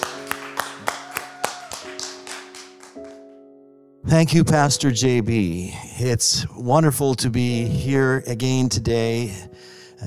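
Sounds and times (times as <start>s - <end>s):
audience clapping to welcome a guest pastor at a church service: 0.0s - 3.4s
speech: 4.1s - 10.0s.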